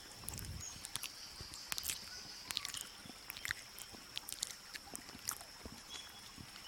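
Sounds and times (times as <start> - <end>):
animal eating: 0.1 - 6.6.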